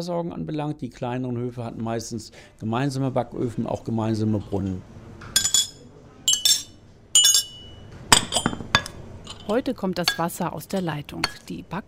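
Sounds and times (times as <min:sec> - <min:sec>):
speech: 0:00.0 - 0:05.0, 0:09.5 - 0:11.8
spoons clinking on coffee cups and saucers: 0:05.4 - 0:11.8.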